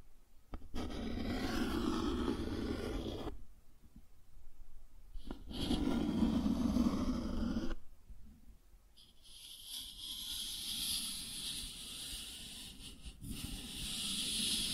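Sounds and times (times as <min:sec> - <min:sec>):
cardboard scratched and rubbed: 0:00.7 - 0:03.3, 0:05.3 - 0:07.8, 0:09.3 - 0:14.7.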